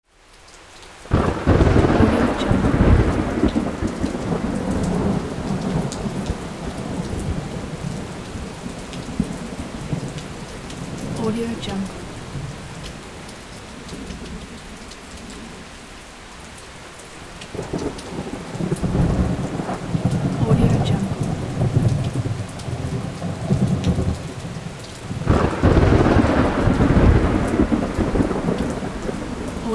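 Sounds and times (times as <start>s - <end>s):
thunder: 1.1s - 11.2s, 17.5s - 20.5s, 21.1s - 29.6s.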